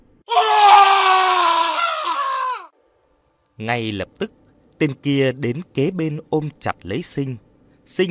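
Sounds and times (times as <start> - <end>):
man screaming in anguish as he is stabbed: 0.3 - 2.7
speech: 3.6 - 8.0.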